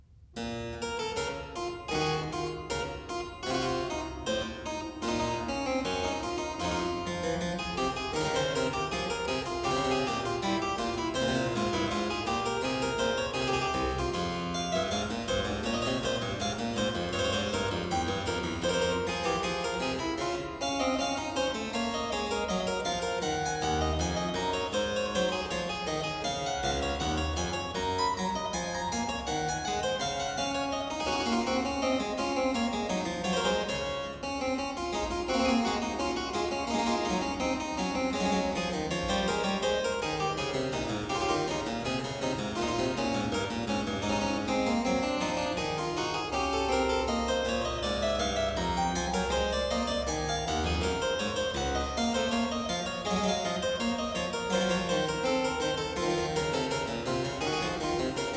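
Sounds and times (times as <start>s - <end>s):
two-part keyboard invention in B minor: 0.4s - 58.3s.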